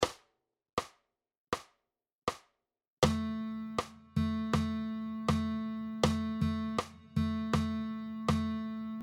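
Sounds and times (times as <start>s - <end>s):
guitar playing rhythm dictation exercises: 3.0s - 9.0s.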